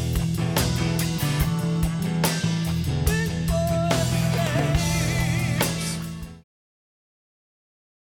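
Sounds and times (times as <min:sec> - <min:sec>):
heavy groove music: 0:00.0 - 0:06.4.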